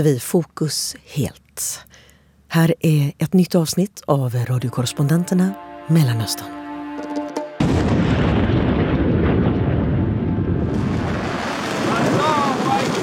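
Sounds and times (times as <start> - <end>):
speech: 0.0 - 7.1
Iranian rockets launching at Israel: 7.6 - 13.0.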